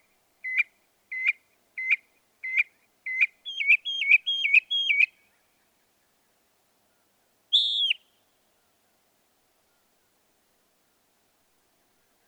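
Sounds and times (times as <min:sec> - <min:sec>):
northern mockingbird singing: 0:00.5 - 0:05.1, 0:07.5 - 0:08.1.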